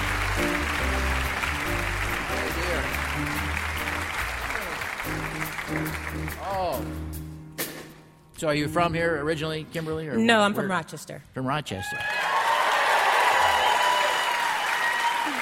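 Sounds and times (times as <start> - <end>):
crowd applauding: 0.0 - 6.8, 11.9 - 15.4
speech: 6.4 - 7.2, 8.4 - 12.2
whoops and cheers: 11.8 - 15.4.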